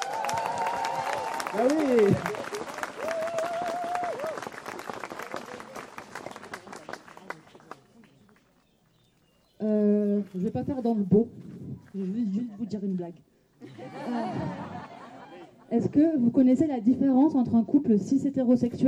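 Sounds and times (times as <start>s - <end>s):
audience applause: 0.0s - 8.4s
speech: 1.5s - 2.5s, 10.4s - 13.3s, 15.7s - 18.8s
laughter: 13.6s - 15.7s.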